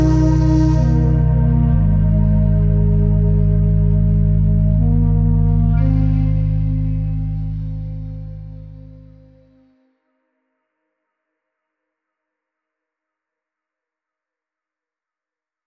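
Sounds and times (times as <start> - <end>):
shakuhachi: 0.0 - 7.4.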